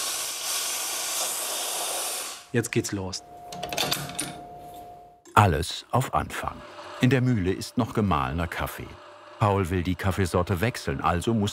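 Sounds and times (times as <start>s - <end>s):
espresso machine steam wand hissing: 0.0s - 2.6s, 6.0s - 11.5s
speech: 2.5s - 3.7s, 5.4s - 11.5s.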